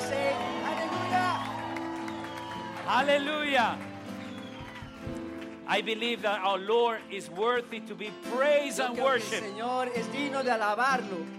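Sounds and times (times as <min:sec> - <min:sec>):
audience shouting and cheering with joy: 0:00.0 - 0:05.6, 0:08.8 - 0:10.6
speech: 0:02.9 - 0:03.9, 0:05.7 - 0:11.3.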